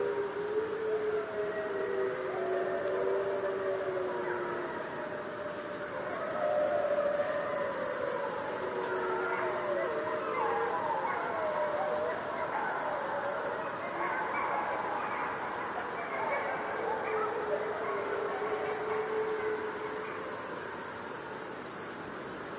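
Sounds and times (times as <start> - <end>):
gray wolf pack howling: 0.0 - 21.6
insect trills: 0.0 - 22.5.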